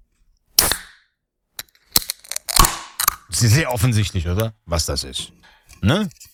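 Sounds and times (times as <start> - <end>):
fizzy drink can opening: 1.6 - 3.2
speech: 3.3 - 6.3.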